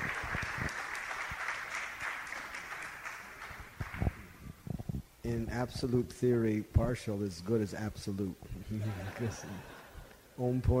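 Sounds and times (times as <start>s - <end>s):
audience applause: 0.0s - 4.3s
speech: 5.3s - 9.8s, 10.4s - 10.7s
laughter: 8.6s - 10.3s.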